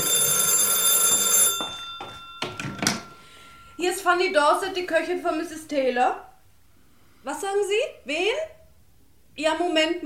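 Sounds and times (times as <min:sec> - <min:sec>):
telephone ringing: 0:00.0 - 0:05.2
speech: 0:03.8 - 0:06.3, 0:07.2 - 0:08.6, 0:09.4 - 0:10.0.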